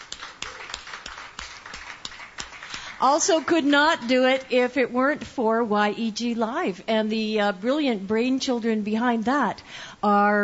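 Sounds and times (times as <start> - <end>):
audience applause: 0.0 - 3.6
speech: 3.0 - 10.4.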